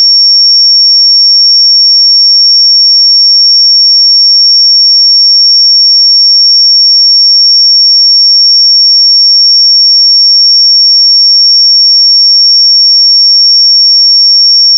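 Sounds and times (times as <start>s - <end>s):
5501 Hz sine pure tone: 0.0s - 14.7s.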